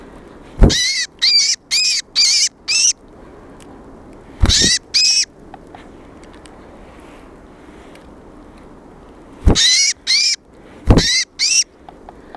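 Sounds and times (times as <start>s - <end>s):
great tit rasping calls: 0.7s - 2.9s, 4.4s - 5.3s, 9.5s - 10.4s, 10.9s - 11.7s.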